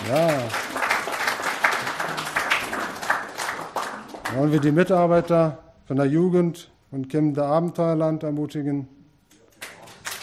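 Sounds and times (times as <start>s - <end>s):
audience applause: 0.0s - 4.8s, 9.7s - 10.2s
speech: 0.1s - 0.8s, 4.3s - 9.0s.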